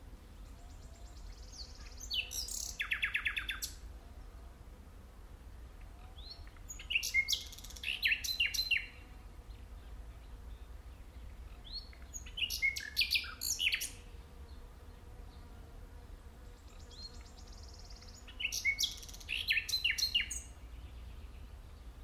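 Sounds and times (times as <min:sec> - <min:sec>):
common nightingale singing: 0:00.4 - 0:03.8, 0:06.0 - 0:09.0, 0:11.0 - 0:14.0, 0:16.6 - 0:21.6.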